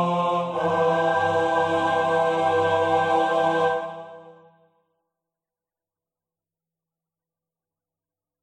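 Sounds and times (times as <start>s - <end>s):
tenor singing: 0.0s - 4.5s.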